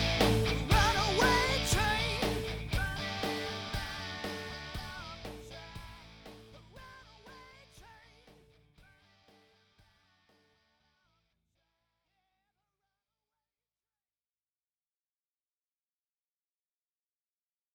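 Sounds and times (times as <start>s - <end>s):
rock music: 0.0s - 8.7s.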